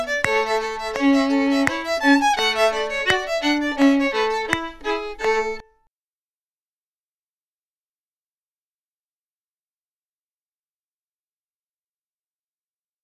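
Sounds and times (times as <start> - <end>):
play-along fiddle: 0.0 - 5.7.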